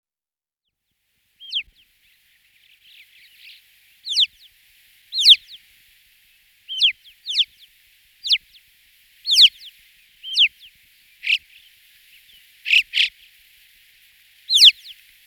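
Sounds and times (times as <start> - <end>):
bird giving buzzy harsh notes and a descending chirp: 3.0 - 4.5, 5.1 - 5.6, 6.7 - 7.6, 8.2 - 8.5, 9.2 - 13.3, 14.5 - 15.0.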